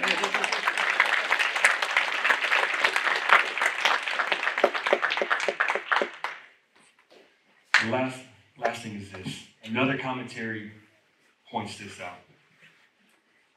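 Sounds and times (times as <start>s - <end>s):
crowd clapping: 0.0s - 6.6s, 7.7s - 7.9s
speech: 7.9s - 10.9s, 11.5s - 12.3s.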